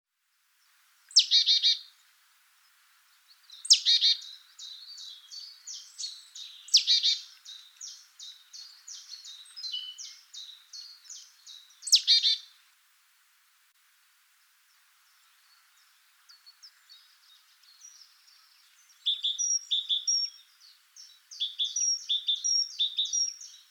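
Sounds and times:
great tit calling: 0:01.1 - 0:01.9, 0:03.4 - 0:12.5, 0:16.3 - 0:23.6.

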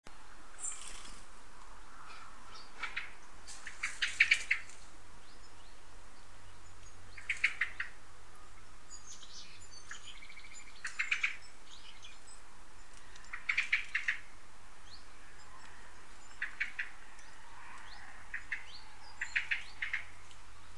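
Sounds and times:
low hum: 0:00.1 - 0:20.7
common blackbird calls: 0:02.8 - 0:04.7, 0:07.1 - 0:08.0, 0:09.1 - 0:12.2, 0:12.9 - 0:14.3, 0:15.2 - 0:20.2.

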